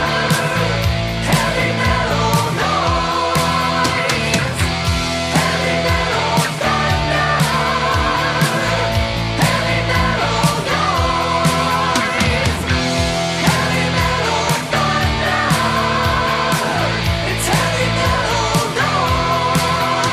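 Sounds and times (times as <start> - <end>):
heavy metal music: 0.0 - 20.1.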